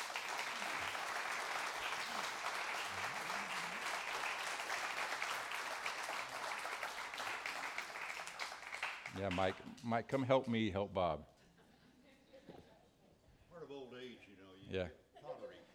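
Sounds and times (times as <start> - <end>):
audience applause: 0.0 - 9.6
speech: 9.2 - 11.3, 14.7 - 15.0.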